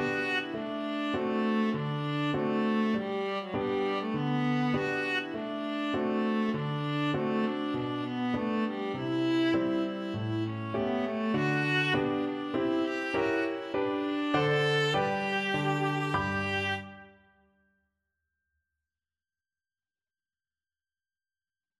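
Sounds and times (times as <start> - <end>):
viola: 0.0 - 17.2.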